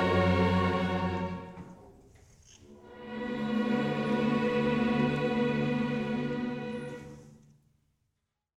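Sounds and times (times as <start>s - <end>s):
four violins playing a concerto in D major: 0.0s - 1.9s, 2.6s - 7.6s.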